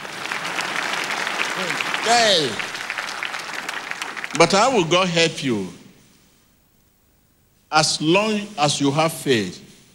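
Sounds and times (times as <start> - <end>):
audience clapping: 0.0 - 5.1
speech: 1.6 - 2.7, 4.3 - 5.8, 7.7 - 9.7.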